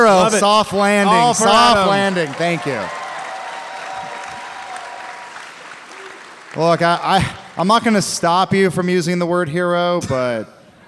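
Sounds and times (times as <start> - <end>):
audience applause: 0.0 - 8.2
speech: 0.1 - 3.0, 6.6 - 10.6.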